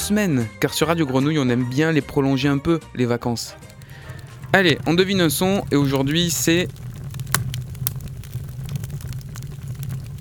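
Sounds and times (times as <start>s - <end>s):
speech: 0.1s - 3.7s, 4.5s - 6.8s
fire crackling: 3.2s - 10.1s.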